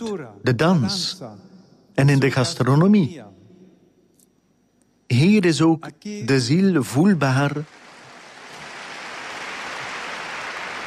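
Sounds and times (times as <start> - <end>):
speech: 0.0 - 3.3, 5.1 - 7.8
large audience applause: 7.5 - 10.8.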